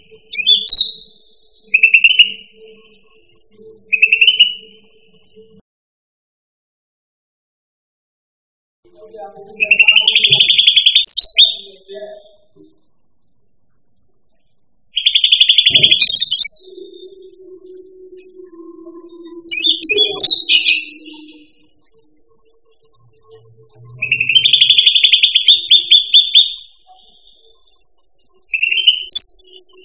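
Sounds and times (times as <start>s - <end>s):
bird song with short bright high whistled and chirping notes: 0.0s - 5.4s, 9.5s - 12.8s, 15.0s - 29.8s.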